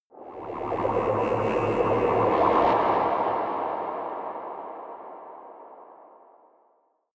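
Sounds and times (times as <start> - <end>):
huge underwater alien spacecraft drive: 0.3 - 6.0.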